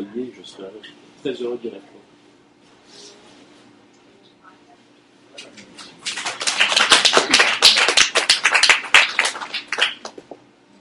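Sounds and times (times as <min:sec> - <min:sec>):
speech: 0:00.2 - 0:02.2
audience applause: 0:06.0 - 0:10.2.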